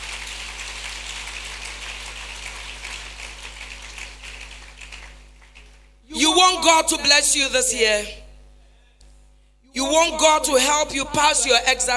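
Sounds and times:
audience clapping: 0:00.0 - 0:06.0
speech: 0:06.5 - 0:08.2, 0:09.9 - 0:11.9.

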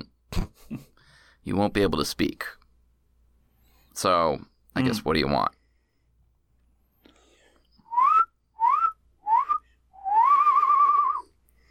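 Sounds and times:
speech: 0:01.5 - 0:02.6, 0:04.0 - 0:05.6
slide whistle bummer noise: 0:07.7 - 0:11.3.

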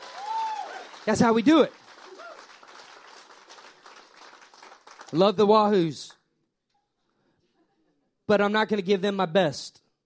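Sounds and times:
audience clapping: 0:00.0 - 0:05.8
speech: 0:01.0 - 0:01.8, 0:05.1 - 0:06.2, 0:08.3 - 0:09.8.

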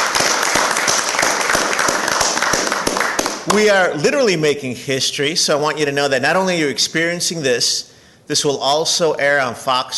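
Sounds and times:
audience applause: 0:00.0 - 0:03.8
speech: 0:03.5 - 0:09.9.

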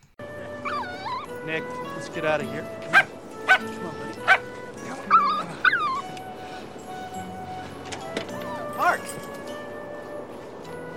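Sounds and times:
Labrador puppies yipping: 0:00.6 - 0:01.4, 0:02.9 - 0:06.3
Labrador puppies whimpering: 0:00.6 - 0:01.8, 0:02.9 - 0:06.4
speech: 0:01.4 - 0:05.2.

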